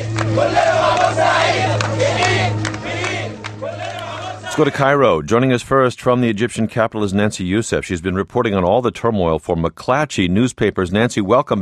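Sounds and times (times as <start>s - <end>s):
protesters chanting in Cairo in support of Port Said: 0.0s - 4.8s
steady low hum: 0.0s - 11.6s
speech: 4.6s - 11.6s.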